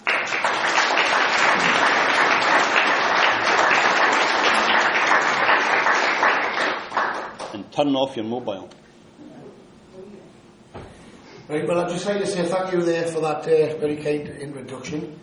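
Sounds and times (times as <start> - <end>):
audience applause: 0.0 - 7.6
speech: 7.8 - 8.8, 11.5 - 15.2.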